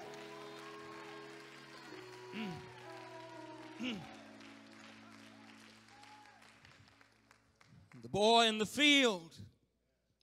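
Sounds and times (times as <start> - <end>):
audience clapping: 0.0 - 8.7
speech: 3.8 - 4.2, 8.1 - 9.5.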